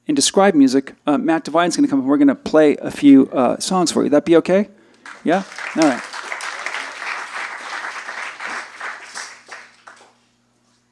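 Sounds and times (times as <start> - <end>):
speech: 0.1 - 6.2
audience applause and cheering: 5.0 - 10.2.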